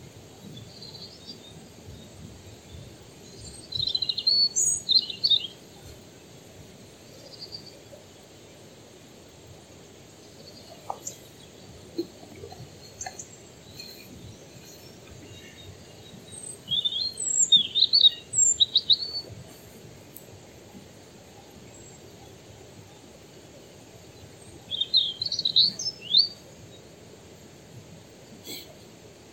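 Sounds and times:
low background hiss: 0.0s - 29.3s
European robin singing: 2.7s - 6.0s, 10.2s - 19.6s, 24.1s - 26.8s.

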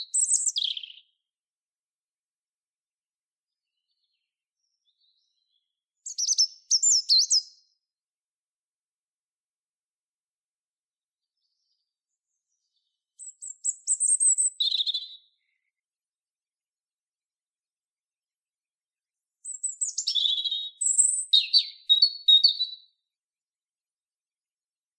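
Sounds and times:
European robin singing: 0.0s - 1.2s, 3.5s - 7.8s, 11.3s - 15.8s, 19.4s - 23.0s.

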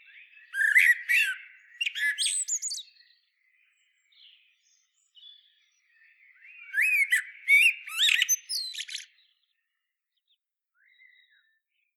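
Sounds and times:
Common blackbird song: 0.0s - 9.4s.

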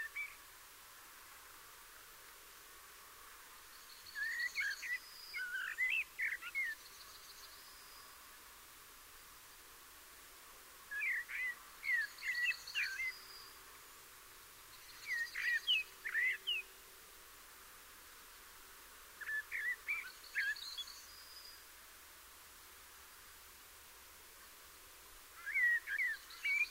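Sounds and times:
Common blackbird singing: 0.0s - 0.4s, 4.0s - 7.7s, 10.9s - 13.5s, 14.8s - 16.7s, 19.2s - 21.6s, 25.4s - 26.6s.

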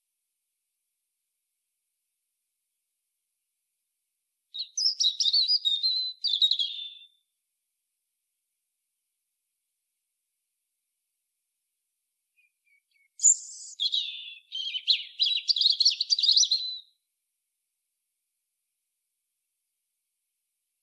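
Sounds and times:
European robin singing: 4.5s - 7.2s, 12.4s - 17.0s.

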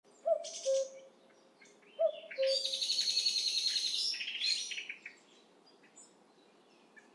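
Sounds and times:
common blackbird singing: 0.2s - 5.2s.

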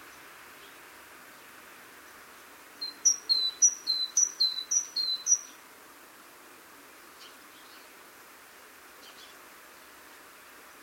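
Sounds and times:
soft background hiss: 0.0s - 10.8s
great tit singing: 2.8s - 5.6s.

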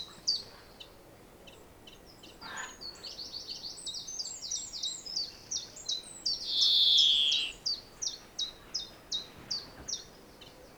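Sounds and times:
European greenfinch Chloris chloris twittering chirps: 6.4s - 7.6s.

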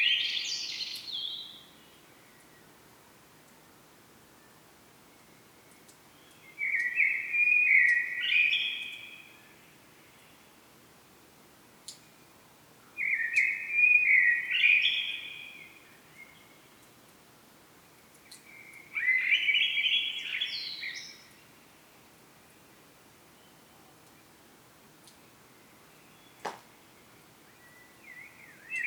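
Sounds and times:
common blackbird singing: 6.2s - 9.1s, 13.0s - 16.4s, 18.3s - 21.2s, 26.0s - 28.8s
faint click: 11.8s - 12.1s, 25.0s - 25.2s.

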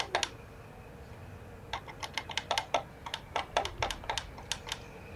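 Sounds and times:
Eurasian blue tit thin whistle and clicking notes: 0.0s - 0.4s, 1.7s - 5.0s.

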